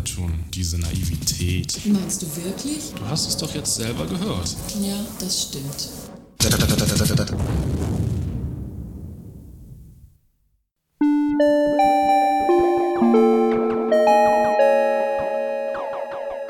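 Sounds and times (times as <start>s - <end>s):
speech: 0.1s - 8.1s
doorbell buzzing at apartment door: 11.0s - 16.4s.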